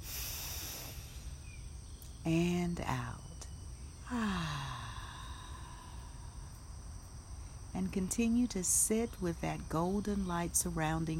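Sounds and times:
slow deep inhale: 0:00.0 - 0:01.6, 0:04.0 - 0:06.6
speech: 0:02.2 - 0:03.2, 0:04.1 - 0:04.6, 0:07.8 - 0:11.1.

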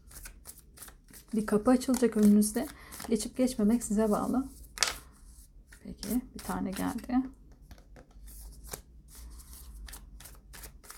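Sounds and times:
tarot cards being shuffled: 0:00.1 - 0:03.2, 0:04.2 - 0:05.1, 0:07.7 - 0:10.9
speech: 0:01.3 - 0:04.6, 0:06.1 - 0:07.4.

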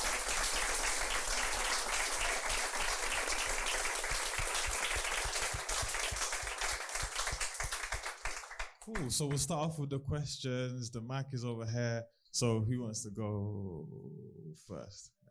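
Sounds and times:
audience applause: 0:00.0 - 0:09.4
speech: 0:08.9 - 0:15.2.

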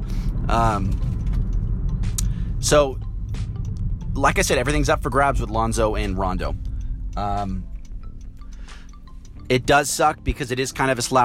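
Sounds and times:
car engine and road rumble in traffic: 0:00.0 - 0:11.2
speech: 0:00.5 - 0:01.1, 0:02.6 - 0:03.0, 0:04.2 - 0:06.6, 0:07.2 - 0:07.7, 0:09.5 - 0:11.2.

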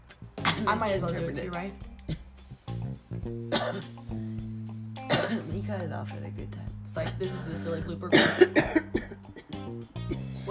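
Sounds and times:
speech: 0:00.6 - 0:01.9, 0:03.3 - 0:04.4, 0:05.3 - 0:09.1
person coughing: 0:03.5 - 0:03.9, 0:05.1 - 0:05.5, 0:08.1 - 0:09.5.

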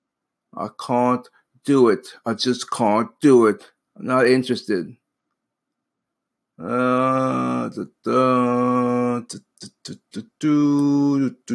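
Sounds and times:
speech: 0:00.6 - 0:05.0, 0:06.6 - 0:11.5
person humming: 0:06.6 - 0:11.5.

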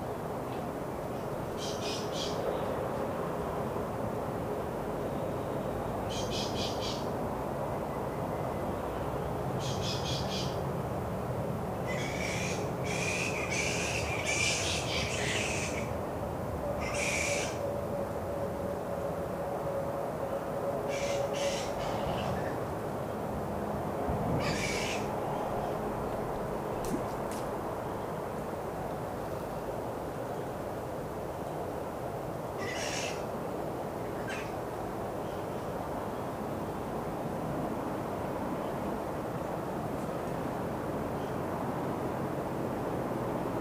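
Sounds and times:
traffic: 0:00.0 - 0:43.5
flying fox bat colony just before dusk: 0:01.6 - 0:02.4, 0:09.6 - 0:10.6, 0:11.9 - 0:16.0, 0:16.8 - 0:17.6, 0:20.9 - 0:22.6, 0:24.4 - 0:25.8, 0:32.6 - 0:33.3, 0:34.1 - 0:34.6.

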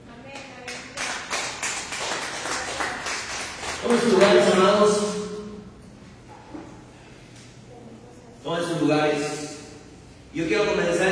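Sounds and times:
audience applause: 0:00.8 - 0:04.7
speech: 0:03.8 - 0:05.2, 0:08.7 - 0:09.4, 0:10.3 - 0:11.1.

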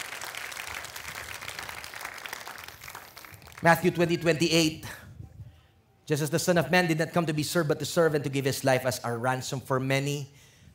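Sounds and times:
church congregation applauding to praise God during a sermon: 0:00.0 - 0:04.1
speech: 0:03.6 - 0:05.0, 0:06.1 - 0:10.4.

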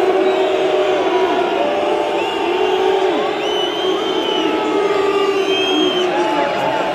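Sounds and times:
stadium crowd jeering roar of voices: 0:00.0 - 0:06.9
stadium crowd piercing whistles: 0:02.2 - 0:06.2.

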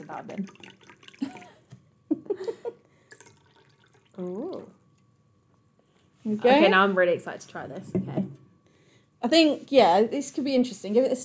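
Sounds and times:
speech: 0:00.0 - 0:01.4, 0:04.2 - 0:04.8, 0:06.2 - 0:08.4, 0:09.2 - 0:11.2
lemon lime soda poured into a cocktail: 0:00.1 - 0:01.6, 0:03.0 - 0:04.8.

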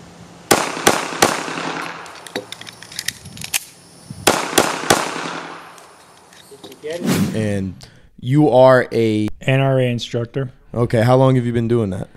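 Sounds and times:
gunshots at a shooting range: 0:00.5 - 0:02.2, 0:04.2 - 0:05.8
speech: 0:06.9 - 0:12.1.

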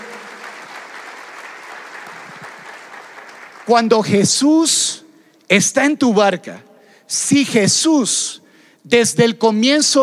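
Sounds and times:
audience applauding: 0:00.0 - 0:04.2
speech: 0:03.7 - 0:10.0.

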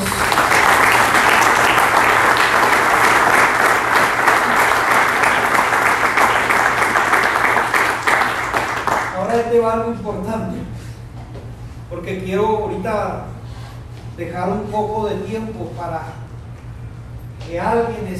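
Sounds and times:
crowd applauding: 0:00.0 - 0:09.3
speech: 0:09.7 - 0:10.6, 0:12.1 - 0:13.3, 0:14.2 - 0:16.2, 0:17.5 - 0:18.1.

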